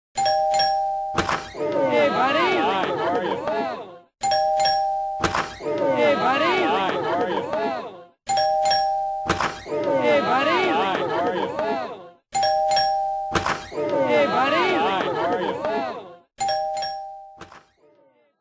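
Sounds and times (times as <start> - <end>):
doorbell: 0.2 - 1.3, 4.2 - 5.4, 8.3 - 9.4, 12.4 - 13.5, 16.4 - 17.5
laughter: 1.7 - 3.9, 5.7 - 8.0, 9.8 - 12.2, 13.8 - 16.2.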